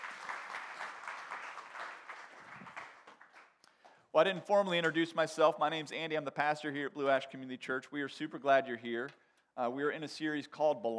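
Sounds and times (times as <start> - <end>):
crowd applause: 0.0 - 3.5
speech: 4.2 - 10.9.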